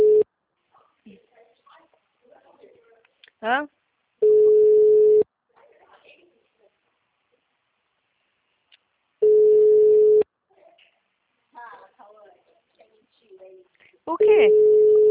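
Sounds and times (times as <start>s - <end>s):
telephone ringing with an incoming call: 0.0s - 0.2s, 4.2s - 5.2s, 9.2s - 10.2s, 14.3s - 15.1s
speech: 3.4s - 3.8s.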